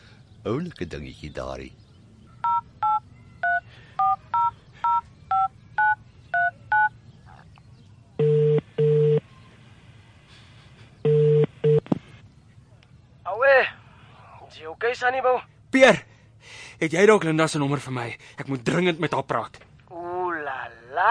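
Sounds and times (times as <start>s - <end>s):
speech: 0.4s - 1.8s, 15.0s - 16.1s, 16.8s - 19.7s
low buzzing telephone ringing tones in short pairs: 2.4s - 6.9s, 8.2s - 9.2s, 11.1s - 11.8s
two-tone telephone keypad beeps: 2.4s - 6.9s.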